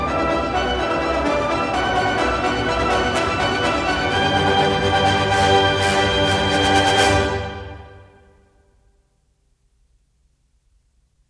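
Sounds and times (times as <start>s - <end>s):
flute: 0.0s - 8.3s.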